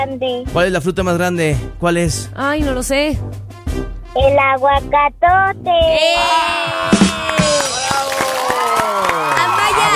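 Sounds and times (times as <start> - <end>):
speech: 0.0 - 7.4
standing ovation applause and cheering: 6.3 - 9.9.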